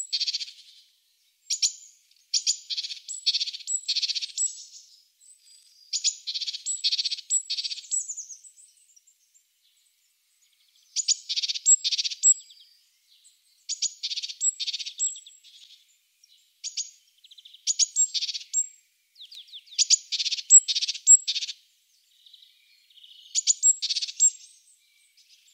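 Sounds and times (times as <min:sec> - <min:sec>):
Eurasian blue tit calls: 0:00.0 - 0:00.6, 0:01.5 - 0:04.8, 0:05.9 - 0:08.5, 0:11.0 - 0:12.6, 0:13.7 - 0:15.8, 0:16.6 - 0:21.6, 0:23.3 - 0:24.6.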